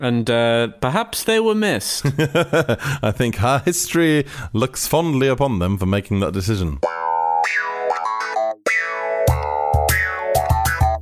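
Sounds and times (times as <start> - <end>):
speech: 0.0 - 7.1
bright instrumental TV sitcom theme tune: 6.8 - 11.0.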